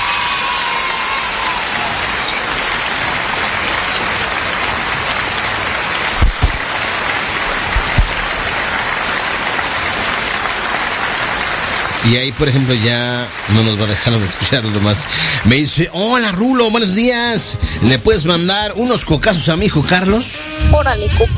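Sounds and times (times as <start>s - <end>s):
applause: 0.0s - 17.0s
speech: 12.1s - 21.3s.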